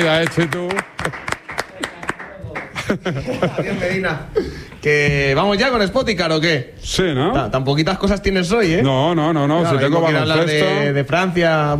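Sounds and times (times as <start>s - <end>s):
speech: 0.0s - 1.3s, 2.9s - 11.7s
hand claps: 0.0s - 3.0s
laughter: 2.7s - 4.5s.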